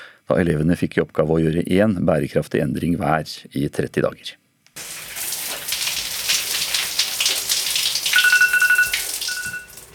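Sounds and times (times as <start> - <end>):
speech: 0.3 - 4.4
shower running: 4.8 - 9.9
electronic tone: 8.2 - 9.7.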